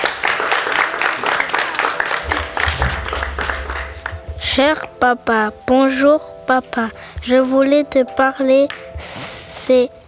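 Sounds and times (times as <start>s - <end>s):
group applauding: 0.0s - 4.4s
low rumble: 2.2s - 4.9s
speech: 4.6s - 10.0s.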